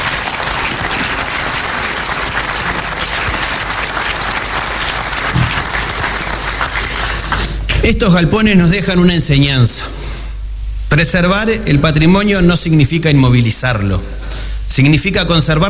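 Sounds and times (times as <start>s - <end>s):
audience applause: 0.0s - 7.6s
speech: 7.9s - 10.0s, 10.9s - 14.2s, 14.8s - 15.6s.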